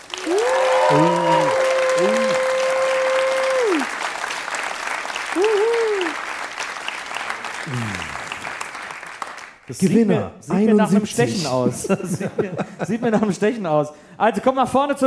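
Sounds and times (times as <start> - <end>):
audience whooping: 0.0 - 4.2, 5.0 - 6.5, 7.6 - 8.6
live audience applause: 0.0 - 9.8
speech: 0.3 - 1.2, 9.8 - 15.0
laughter: 11.3 - 13.6.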